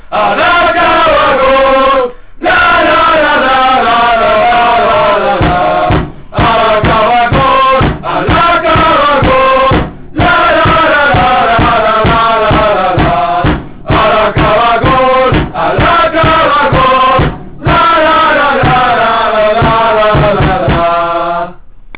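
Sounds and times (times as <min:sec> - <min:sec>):
song: 0:00.2 - 0:21.2.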